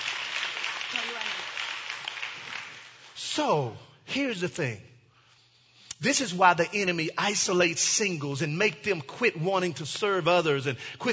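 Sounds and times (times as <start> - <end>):
crowd clapping: 0.0 - 3.2
speech: 3.4 - 4.9, 6.0 - 11.1.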